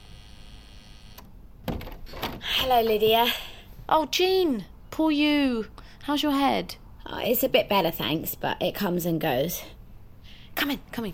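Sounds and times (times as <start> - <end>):
door entry buzzer humming: 0.0 - 2.4
door lock clicks releasing: 1.2 - 2.4
speech: 2.6 - 9.8, 10.6 - 11.1.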